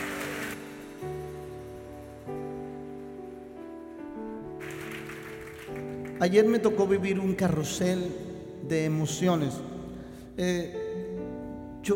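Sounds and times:
audience applause: 0.0 - 1.0, 4.5 - 6.2
sustained keyboard chords: 0.0 - 11.9
speech: 6.2 - 9.7, 10.4 - 10.8.

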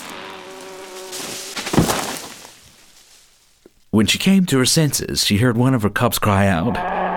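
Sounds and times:
angry bees buzzing: 0.0 - 2.4
speech: 4.0 - 7.0.

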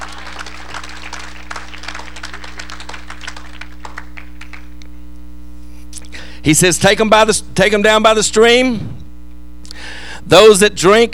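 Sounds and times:
crowd clapping: 0.0 - 4.9
low electrical hum: 0.0 - 11.1
speech: 6.4 - 9.0, 10.2 - 11.1.

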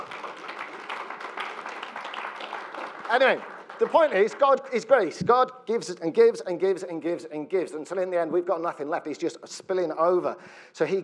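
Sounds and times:
audience applause: 0.0 - 5.0
speech: 3.1 - 11.0.

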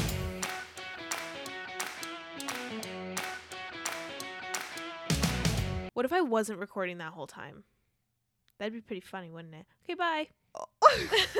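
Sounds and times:
hand clapping: 0.0 - 5.6
speech: 6.0 - 7.8, 8.6 - 11.3.

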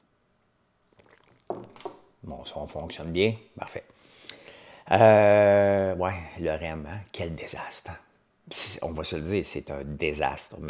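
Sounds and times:
slurping sip of hot coffee: 0.9 - 1.5
gulp or clunk: 1.0 - 2.0
speech: 2.3 - 4.3, 4.9 - 10.6.

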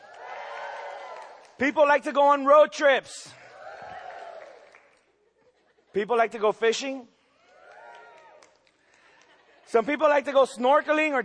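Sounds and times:
audience cheering: 0.0 - 1.6, 3.5 - 4.8, 7.5 - 8.5
speech: 1.6 - 3.4, 6.0 - 7.2, 9.7 - 11.2.

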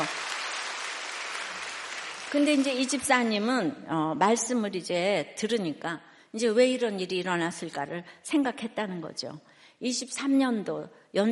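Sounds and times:
audience applause: 0.0 - 2.9
speech: 2.3 - 11.2.

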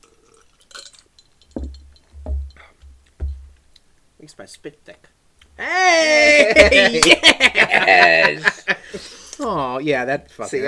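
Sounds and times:
glasses clinking together in a toast: 0.4 - 3.5
speech: 4.2 - 10.6
laughter: 6.1 - 9.0.

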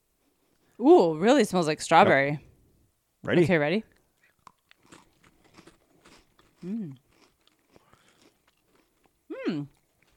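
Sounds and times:
speech: 0.8 - 2.5, 3.2 - 3.9, 6.6 - 7.0, 9.5 - 10.1
crunchy Pocky biscuit sticks being bitten and chewed: 4.2 - 10.1
short hummed voice sound: 6.6 - 7.0.

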